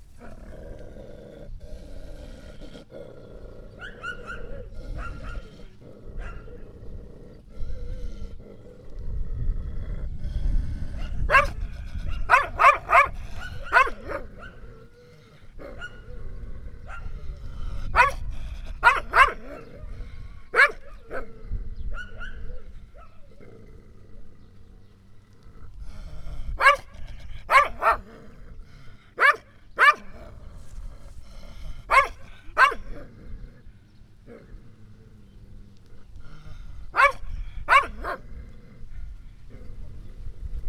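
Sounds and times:
dog barking: 3.8 - 5.5, 11.0 - 14.6, 15.6 - 16.0, 18.0 - 19.7, 20.5 - 21.3, 26.6 - 26.9, 27.5 - 28.1, 29.2 - 30.2, 31.9 - 33.0, 36.9 - 38.2.

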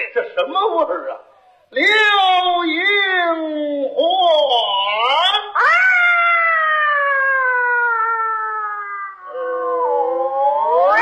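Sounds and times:
speech: 0.1 - 4.5
person yowling like fighting cats: 5.1 - 10.9.

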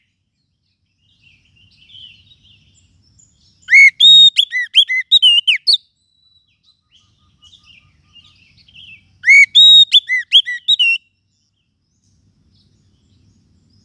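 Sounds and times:
lovebird shrill chirps and whistles: 3.6 - 8.4, 9.2 - 11.0.

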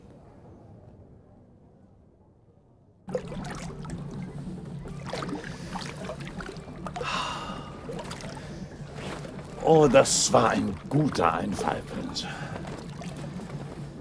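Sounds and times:
low rumble: 3.1 - 14.0
splash of an oar stroke: 3.1 - 14.0
water lapping and swishing around a gliding gondola: 3.1 - 14.0
speech: 9.7 - 12.6.

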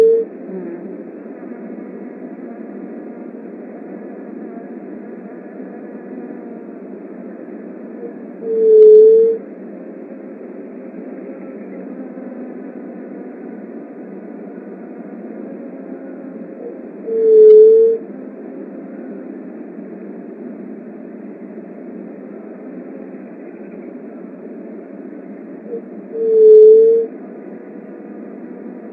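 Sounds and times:
Leptotila dove soft hollow hoot: 0.0 - 0.4, 8.0 - 9.4, 16.6 - 18.1, 25.6 - 27.2.

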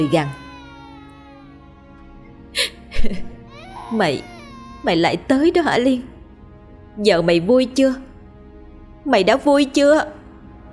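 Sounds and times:
speech: 0.0 - 0.4, 3.0 - 3.3, 3.9 - 6.1, 7.0 - 8.1, 9.0 - 10.2
baby whimpering and sobbing: 0.0 - 5.2.

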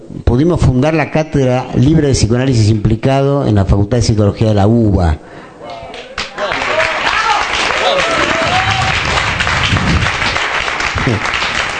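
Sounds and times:
speech: 0.0 - 5.8, 11.1 - 11.4
audience applause: 5.9 - 11.7.

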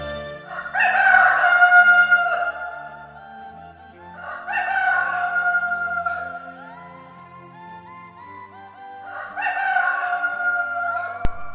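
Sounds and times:
rooster crowing: 0.4 - 2.8, 4.2 - 6.7, 9.1 - 11.4.

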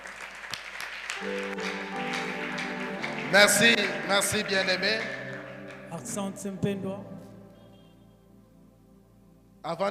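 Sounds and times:
church congregation applause during a teaching and prayer service: 0.0 - 6.9
sustained tone: 2.4 - 9.6
speech: 3.3 - 5.2, 5.9 - 7.2, 9.6 - 9.9.

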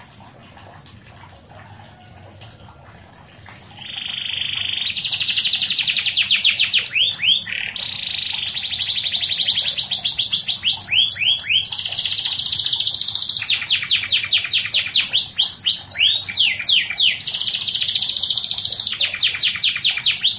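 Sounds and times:
canary singing with buzzy rolling trill: 3.8 - 20.3.

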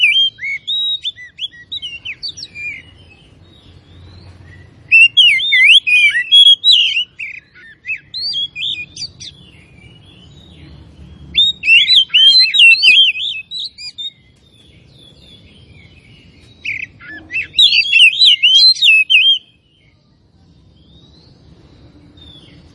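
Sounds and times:
Oriental magpie-robin song: 0.0 - 22.7.

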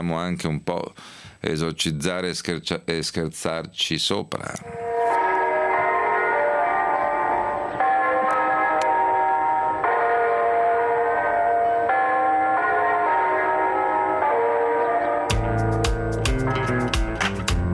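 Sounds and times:
speech: 0.0 - 4.8
festive church bells ringing: 4.6 - 17.6.

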